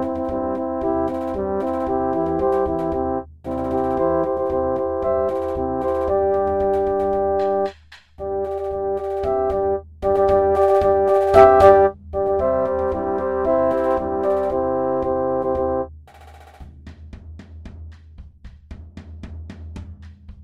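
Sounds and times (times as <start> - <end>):
fanfare: 0.0 - 15.9.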